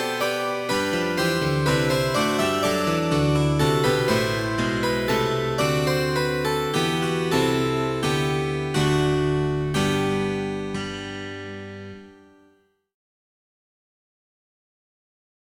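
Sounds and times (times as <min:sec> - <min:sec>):
baroque dance piece: 0:00.0 - 0:11.7.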